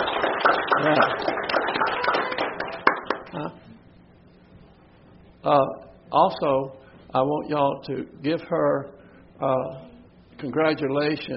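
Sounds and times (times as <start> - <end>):
audience applauding: 0.0 - 3.5
speech: 0.8 - 1.5, 5.4 - 11.3.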